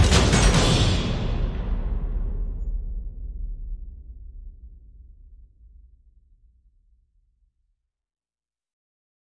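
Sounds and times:
percussion: 0.0s - 5.8s.

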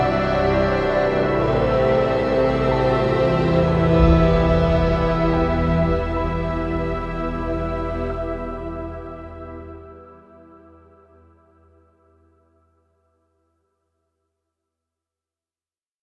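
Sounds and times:
ambient music: 0.0s - 12.6s.

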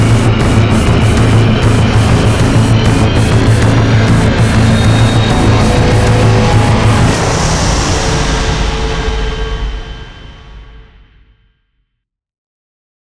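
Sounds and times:
music without drums: 0.0s - 9.9s.

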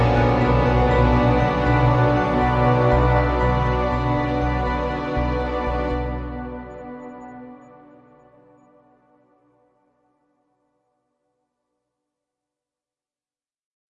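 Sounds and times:
ambient music: 0.0s - 10.5s.

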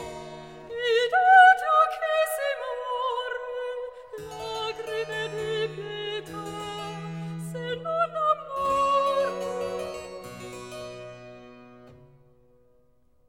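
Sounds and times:
soprano singing recitative in a cantata: 0.0s - 9.9s.

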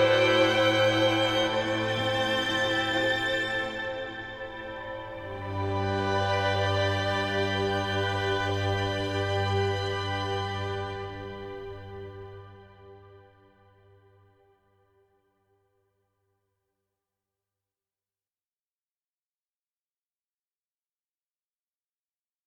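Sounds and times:
ambient music: 0.0s - 14.1s.

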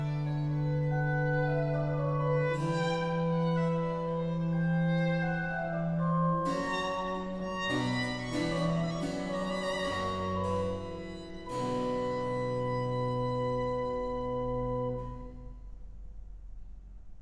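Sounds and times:
violin organ and strings playing a slow concerto movement: 0.0s - 15.6s.

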